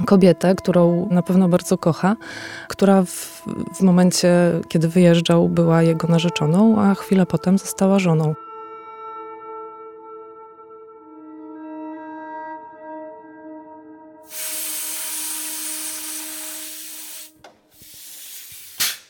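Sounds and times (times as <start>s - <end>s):
speech: 0.1s - 8.4s
compressed air hissing: 14.3s - 19.0s.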